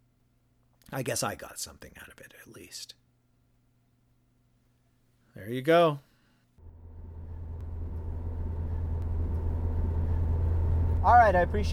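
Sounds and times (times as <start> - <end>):
speech: 0.9 - 3.0, 5.4 - 6.1, 11.0 - 11.7
car driving noise: 6.6 - 11.7.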